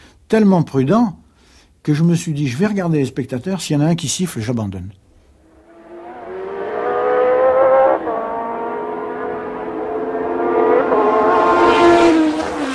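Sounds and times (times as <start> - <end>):
speech: 0.3 - 1.2, 1.8 - 5.0
race car engine downshifting through the gears: 5.4 - 12.7.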